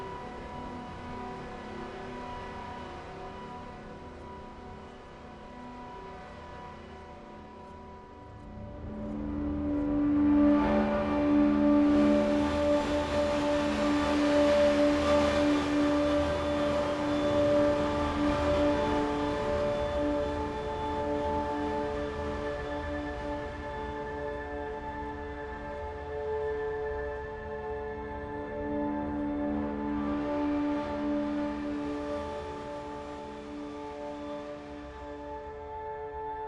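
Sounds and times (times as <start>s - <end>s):
low-intensity suspense pad: 7.2s - 36.3s.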